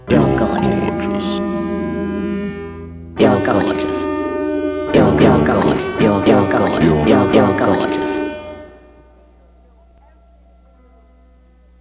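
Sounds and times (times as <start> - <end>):
guitar: 0.0 - 11.0.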